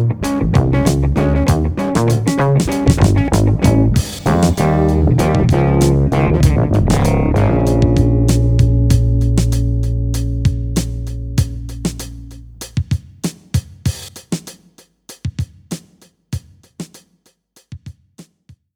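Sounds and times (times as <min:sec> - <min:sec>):
bass through audio pedals: 0:00.0 - 0:12.8
rhythm: 0:00.0 - 0:17.2.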